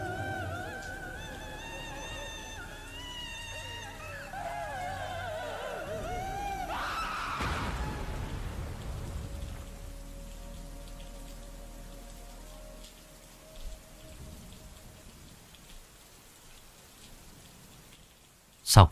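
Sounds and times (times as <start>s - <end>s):
wailing rising-then-falling cry: 0.0s - 8.5s
low rumbling wind at night: 0.0s - 18.0s
steady rain pattering at night: 0.0s - 18.9s.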